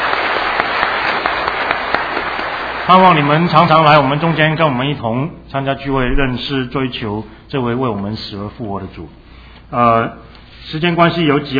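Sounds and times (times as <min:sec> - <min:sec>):
applause at a church gathering welcoming first-time visitors: 0:00.0 - 0:04.1
speech: 0:02.9 - 0:11.5.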